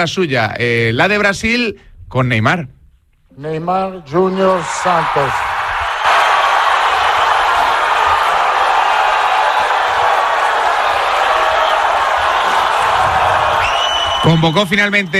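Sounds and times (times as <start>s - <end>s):
speech: 0.0s - 2.8s, 3.4s - 5.5s, 14.2s - 15.1s
crowd applauding: 4.4s - 15.1s.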